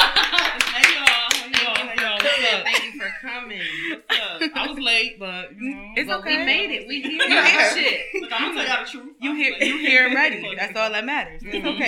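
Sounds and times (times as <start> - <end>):
audience clapping: 0.0 - 2.6
laughter: 0.0 - 4.8, 6.9 - 8.8, 9.4 - 10.4
speech: 3.3 - 11.8.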